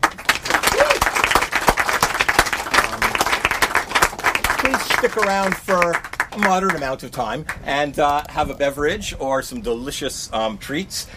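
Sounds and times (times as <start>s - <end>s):
audience applause: 0.0s - 7.6s
speech: 4.8s - 11.1s.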